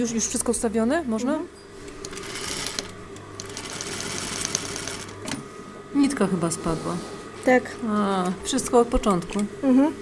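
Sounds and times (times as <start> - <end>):
speech: 0.0 - 1.7, 6.0 - 10.0
embroidery sewing machine running: 2.0 - 5.4.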